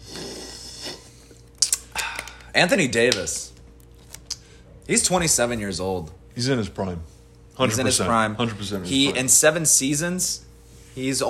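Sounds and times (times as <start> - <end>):
person sipping a drink: 0.0 - 2.5
speech: 2.6 - 3.5, 4.9 - 11.2.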